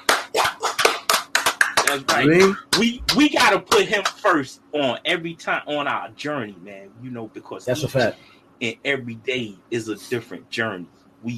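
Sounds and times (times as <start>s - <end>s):
round of applause: 0.0s - 4.3s
speech: 1.9s - 11.3s.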